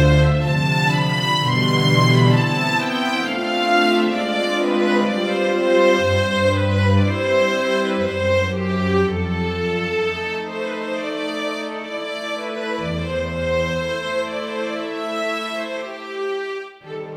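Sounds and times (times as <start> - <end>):
strings playing a folk dance: 0.0 - 17.1.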